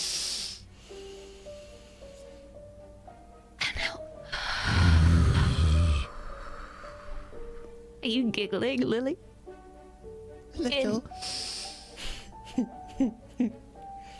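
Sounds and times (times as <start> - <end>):
breathing in during a guided breathing exercise with children: 0.0 - 2.5, 6.0 - 7.7, 11.2 - 12.4, 14.0 - 14.1
quiet steady tonal background: 0.5 - 14.1
speech: 8.1 - 9.3, 10.6 - 11.2, 12.6 - 13.6.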